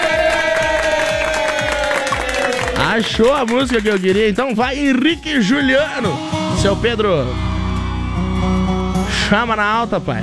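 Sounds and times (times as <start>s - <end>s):
crowd cheering and clapping for a production team: 0.0s - 6.4s, 7.4s - 9.0s
speech: 3.0s - 7.4s, 9.3s - 10.2s.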